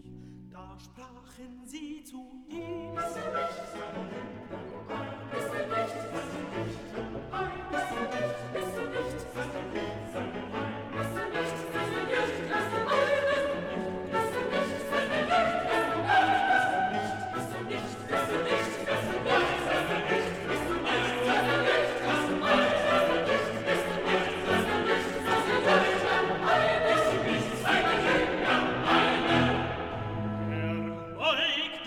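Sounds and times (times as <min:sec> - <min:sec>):
bass voices singing: 0:00.6 - 0:31.5
piano: 0:02.5 - 0:31.7.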